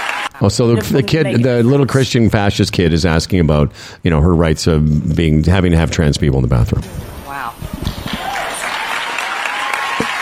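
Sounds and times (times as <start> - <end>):
audience applauding: 0.0 - 1.1, 7.8 - 10.2
speech: 0.4 - 8.0.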